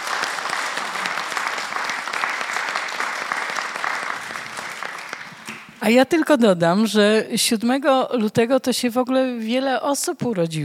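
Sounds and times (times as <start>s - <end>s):
audience applause: 0.0s - 5.7s
speech: 5.8s - 10.6s.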